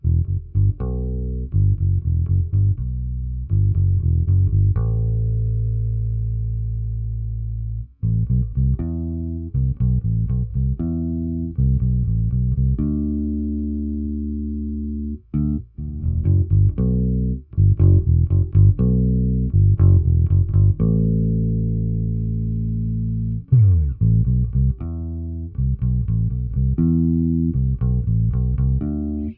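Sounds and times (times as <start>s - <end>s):
bass: 0.0s - 29.3s.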